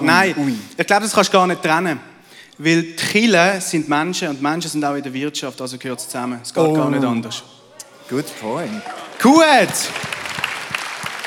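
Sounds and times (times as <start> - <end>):
speech: 0.1 - 10.2
light applause: 8.4 - 11.2.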